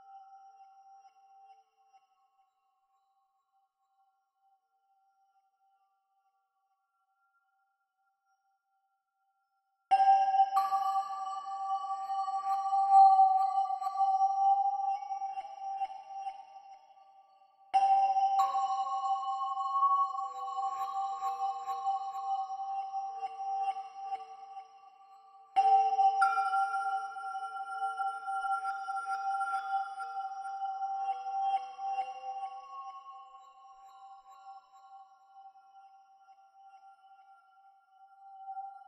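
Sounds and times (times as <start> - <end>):
music chimes: 9.9 - 38.8.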